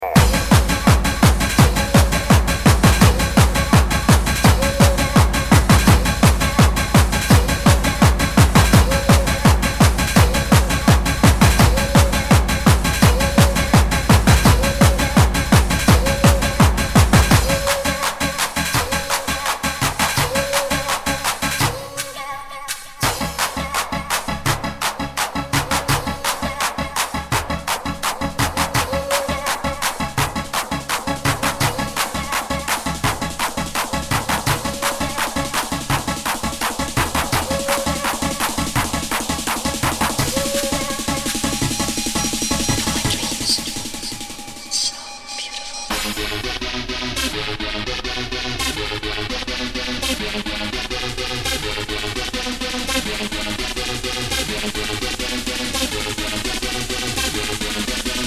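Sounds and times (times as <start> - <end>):
hardcore gabber music: 0.0 - 58.2.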